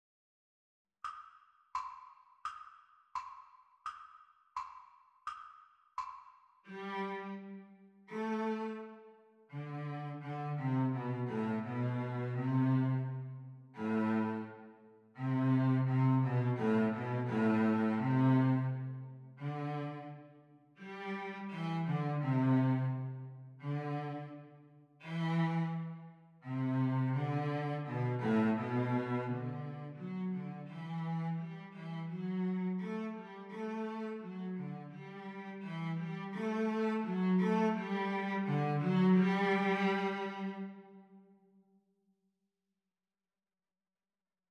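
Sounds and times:
cello duet: 6.7 - 41.2.

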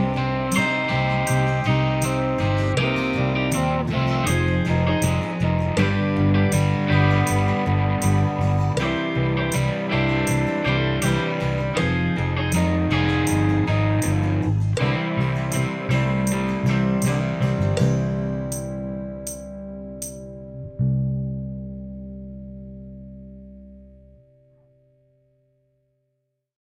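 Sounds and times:
drum kit: 0.0 - 20.3.

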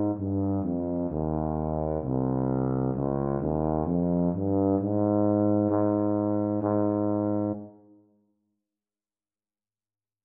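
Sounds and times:
E-flat tuba duet practice: 0.0 - 7.8.

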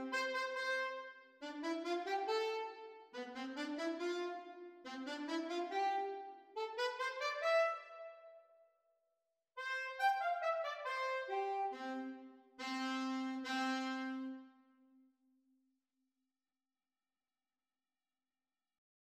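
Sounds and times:
saxophone duet playalong: 0.0 - 8.4, 9.6 - 14.6.

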